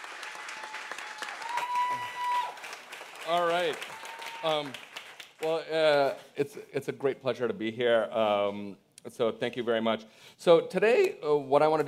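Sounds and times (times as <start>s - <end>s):
round of applause: 0.0s - 5.6s
speech: 3.3s - 11.8s.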